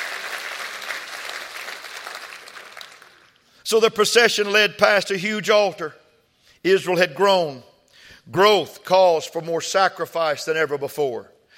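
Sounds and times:
audience clapping hands: 0.0s - 3.5s
speech: 3.7s - 6.0s, 6.6s - 11.3s.

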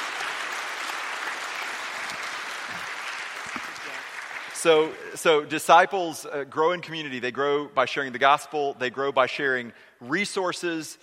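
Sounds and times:
crowd applauding: 0.0s - 5.0s
speech: 4.6s - 11.0s.

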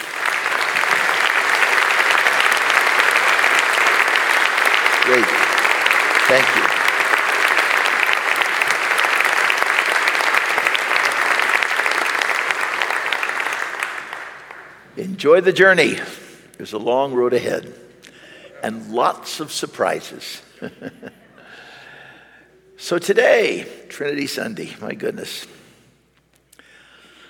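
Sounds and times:
standing audience applause: 0.0s - 14.8s
speech: 5.1s - 5.4s, 6.3s - 6.8s, 15.2s - 17.9s, 18.6s - 21.2s, 22.9s - 25.6s.

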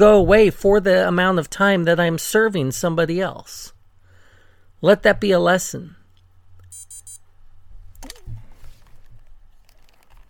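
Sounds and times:
speech: 0.0s - 3.8s, 4.8s - 6.0s
TENS unit beeping: 6.7s - 7.2s
handling rustle and thump: 8.1s - 10.2s.

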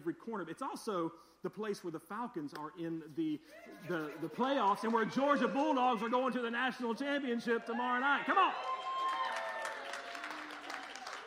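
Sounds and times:
speech: 0.0s - 8.8s
audience clapping: 4.0s - 6.2s, 7.1s - 11.2s.

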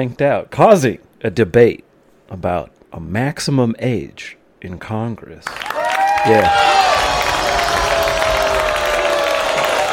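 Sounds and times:
speech: 0.0s - 7.0s
scattered clapping: 5.4s - 9.9s
studio audience mixed reaction crowd noise: 6.2s - 9.9s.

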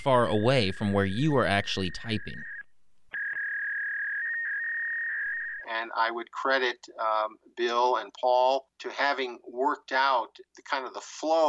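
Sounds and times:
speech: 0.0s - 2.5s, 5.9s - 11.4s
teletype modem tones over phone line: 0.0s - 5.7s.

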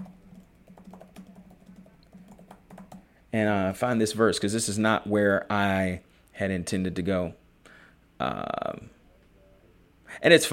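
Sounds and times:
typing on a computer keyboard: 0.0s - 3.0s
speech: 3.3s - 7.4s, 8.2s - 9.0s, 10.2s - 10.5s.

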